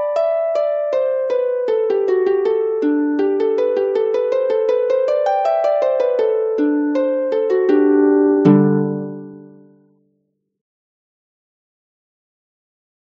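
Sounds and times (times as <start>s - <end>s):
harp playing Welsh-style tunes: 0.0s - 9.8s.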